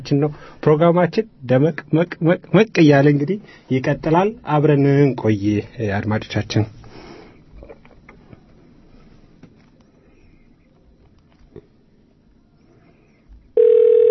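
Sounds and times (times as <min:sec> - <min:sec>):
speech: 0:00.0 - 0:06.8
telephone ringing on a call-in line: 0:13.6 - 0:14.0.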